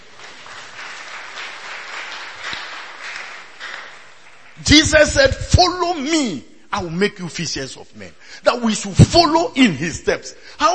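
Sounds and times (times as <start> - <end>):
audience clapping: 0.0 - 5.1
speech: 4.6 - 10.7.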